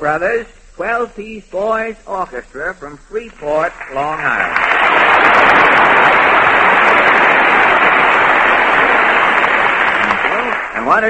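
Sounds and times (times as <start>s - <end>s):
speech: 0.0s - 7.1s, 10.8s - 11.0s
audience applause for an orchestra: 3.6s - 11.0s.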